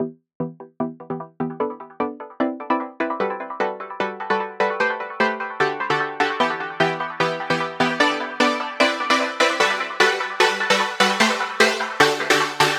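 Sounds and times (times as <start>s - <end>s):
synth loop intro chords at 150 BPM in E minor: 0.0s - 12.7s.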